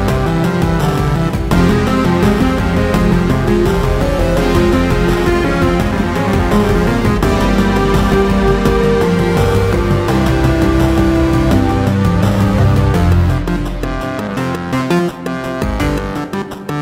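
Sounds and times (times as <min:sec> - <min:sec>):
grooving bassy saxophone: 0:00.0 - 0:16.5
relaxing electronica: 0:00.0 - 0:16.8.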